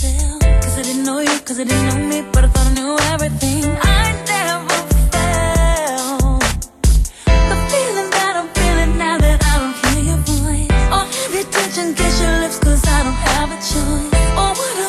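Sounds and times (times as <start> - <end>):
upbeat pop song on cheap Casio keyboard: 0.0 - 14.8.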